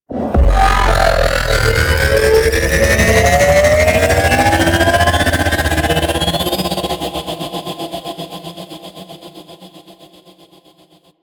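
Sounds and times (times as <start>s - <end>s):
UFO attack charge up: 0.2s - 6.4s.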